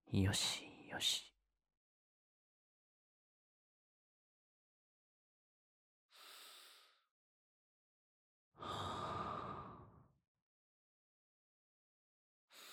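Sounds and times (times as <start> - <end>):
person breathing in sleep: 6.1 - 7.1, 8.6 - 10.0, 12.5 - 12.7.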